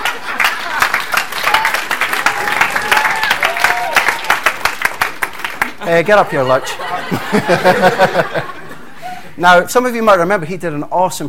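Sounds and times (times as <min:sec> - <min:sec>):
laughter: 0:00.0 - 0:01.2, 0:05.8 - 0:09.4
audience clapping to welcome a speaker onto a stage: 0:00.0 - 0:06.5
crowd noise: 0:00.0 - 0:09.7
speech: 0:05.9 - 0:08.6, 0:09.4 - 0:11.2.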